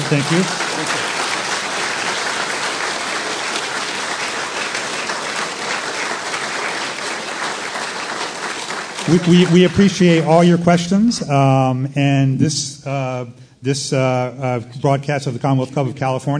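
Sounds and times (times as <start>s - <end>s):
audience applauding panelists: 0.0s - 10.7s
speech: 0.1s - 1.0s, 9.1s - 16.3s.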